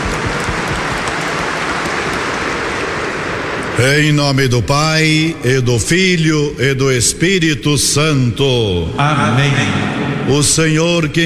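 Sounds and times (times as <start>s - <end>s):
warm round of applause: 0.0s - 3.8s
speech: 3.8s - 11.2s.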